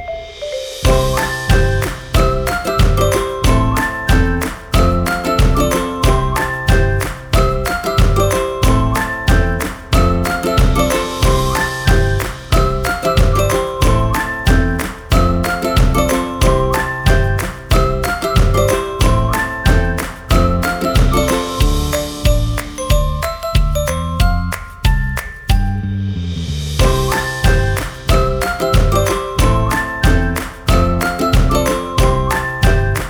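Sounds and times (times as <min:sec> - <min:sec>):
whistling: 0:00.0 - 0:22.7, 0:26.8 - 0:33.0
ukulele: 0:00.0 - 0:33.0.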